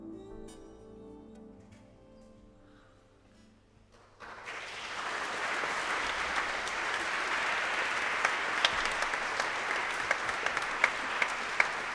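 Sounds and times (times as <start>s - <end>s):
audience applauding the musicians: 3.9s - 11.9s.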